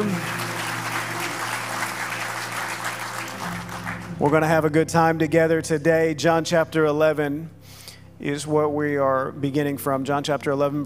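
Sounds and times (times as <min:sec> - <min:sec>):
live audience cheering and applauding: 0:00.0 - 0:04.5
speech: 0:04.2 - 0:07.6, 0:08.2 - 0:10.8.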